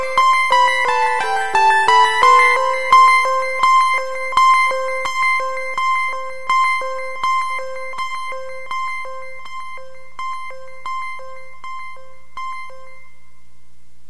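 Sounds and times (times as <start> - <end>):
children's keyboard playing: 0.0 - 6.8.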